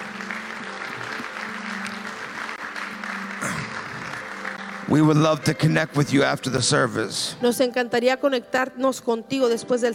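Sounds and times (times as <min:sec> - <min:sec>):
audience hand clapping: 0:00.0 - 0:07.0
speech: 0:04.9 - 0:09.9.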